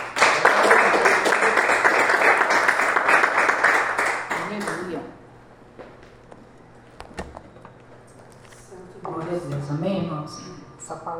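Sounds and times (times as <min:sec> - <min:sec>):
audience applauding: 0:00.0 - 0:05.0.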